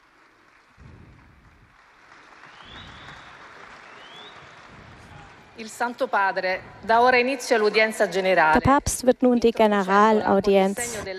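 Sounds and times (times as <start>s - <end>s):
audience applause for Pope Leo XIV: 0.0s - 6.1s
speech: 5.6s - 11.1s.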